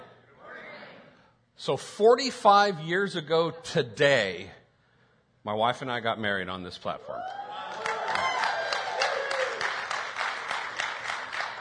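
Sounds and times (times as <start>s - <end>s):
speech: 1.6s - 4.6s, 5.4s - 7.4s
audience applause: 7.3s - 11.5s.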